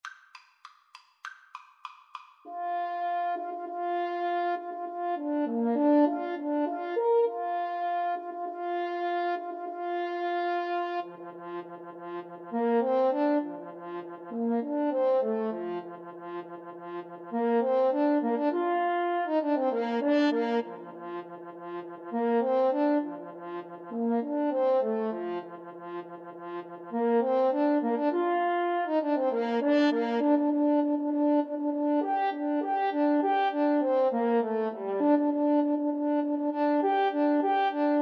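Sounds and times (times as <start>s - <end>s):
french horn duet: 2.5s - 38.0s.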